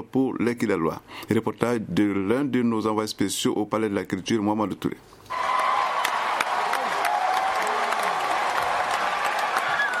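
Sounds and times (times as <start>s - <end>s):
speech: 0.1s - 5.4s
audience cheering and applauding: 5.3s - 9.9s.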